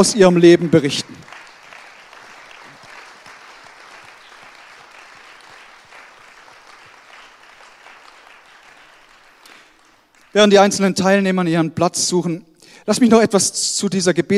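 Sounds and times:
speech: 0:00.0 - 0:01.2, 0:10.4 - 0:14.3
audience applause: 0:00.0 - 0:10.4.

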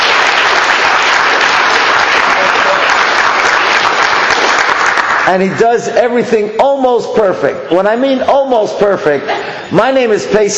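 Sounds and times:
audience applause: 0:00.0 - 0:05.4
speech: 0:05.3 - 0:10.5.

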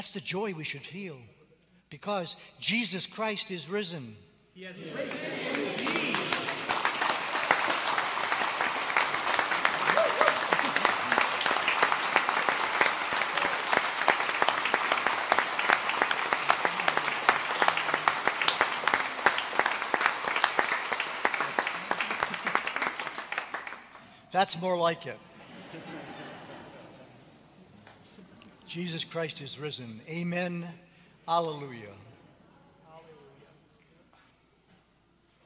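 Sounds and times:
speech: 0:00.0 - 0:06.3, 0:24.4 - 0:25.3, 0:28.7 - 0:32.1
voices cheering: 0:04.8 - 0:22.6
audience applauding: 0:05.0 - 0:24.2
laughter: 0:09.6 - 0:11.5, 0:21.6 - 0:23.0, 0:25.4 - 0:27.5.

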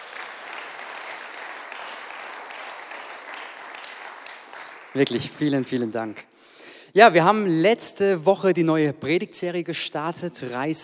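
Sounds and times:
audience applause: 0:00.0 - 0:05.6
speech: 0:04.9 - 0:10.8.

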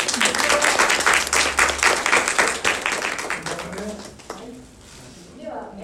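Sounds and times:
audience applause: 0:00.0 - 0:04.6.

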